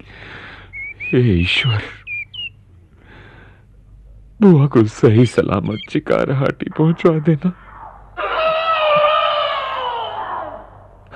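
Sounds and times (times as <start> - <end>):
speech: 1.1 - 2.0, 4.4 - 7.6
elephant trumpeting: 7.6 - 10.8.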